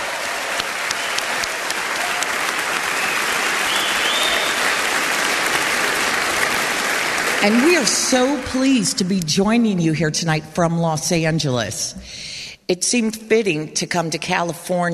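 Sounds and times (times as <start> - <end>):
audience applause: 0.0 - 8.8
speech: 7.4 - 14.9.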